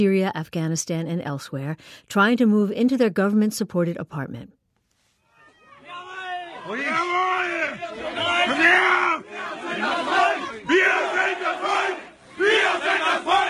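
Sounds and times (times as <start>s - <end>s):
speech: 0.0s - 4.6s
angry crowd shouting: 5.4s - 13.4s.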